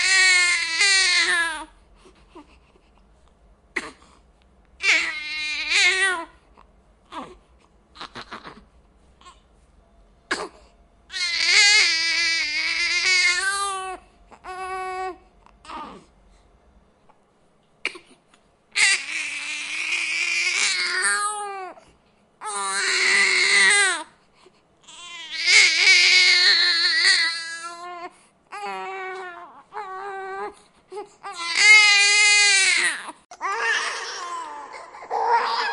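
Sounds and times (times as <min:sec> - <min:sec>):
newborn baby crying: 0:00.0 - 0:01.8, 0:04.8 - 0:09.4, 0:10.3 - 0:16.1, 0:18.7 - 0:21.8, 0:22.4 - 0:24.2, 0:24.8 - 0:35.7.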